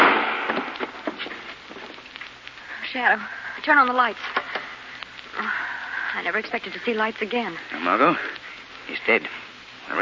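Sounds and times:
gunshot sound effect in a 1940 radio drama of The Shadow: 0.0s - 1.2s
faint crackling ticks: 0.7s - 9.6s
speech: 2.9s - 4.4s, 6.2s - 10.0s.

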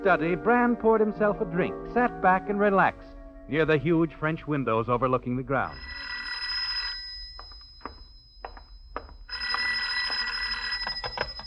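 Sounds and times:
speech: 0.0s - 6.1s
telephone bell ringing: 5.7s - 11.4s.

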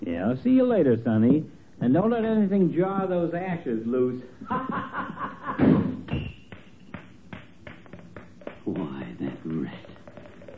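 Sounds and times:
speech: 0.0s - 5.8s
laughter: 4.4s - 6.0s
door being slammed: 5.6s - 6.3s.

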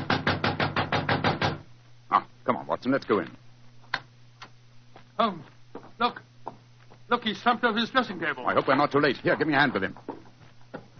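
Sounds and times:
knocking on a dressing room door: 0.0s - 1.7s
speech: 2.1s - 3.4s, 5.2s - 6.2s, 7.1s - 10.1s.

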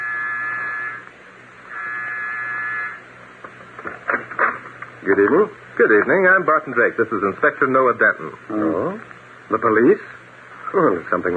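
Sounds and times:
doorbell buzzer ringing: 0.0s - 1.0s, 1.7s - 3.0s
speech: 5.0s - 11.3s.

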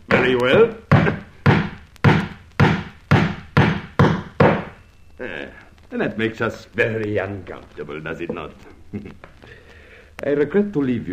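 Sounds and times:
speech: 0.2s - 1.2s, 5.9s - 9.6s, 10.2s - 11.1s
hammer driving nails, amateur carpentry: 0.9s - 4.8s.

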